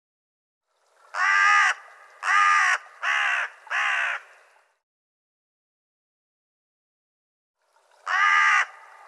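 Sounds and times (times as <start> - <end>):
bird giving a harsh raspy caw: 1.1 - 4.4, 8.0 - 9.0.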